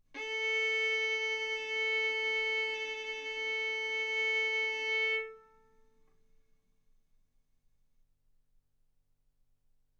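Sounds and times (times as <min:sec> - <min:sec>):
violin arco on A string: 0:00.2 - 0:05.7.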